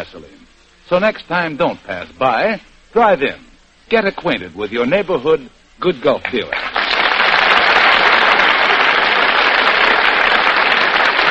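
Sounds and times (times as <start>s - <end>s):
speech: 0.0s - 6.8s
audience applause for actors' stage entrance: 6.3s - 11.2s.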